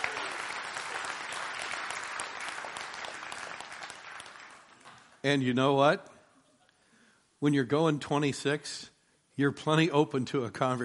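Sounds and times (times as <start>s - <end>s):
audience applauding police officers and sheriff's deputies: 0.0s - 5.2s
speech: 5.2s - 6.1s, 7.4s - 10.8s.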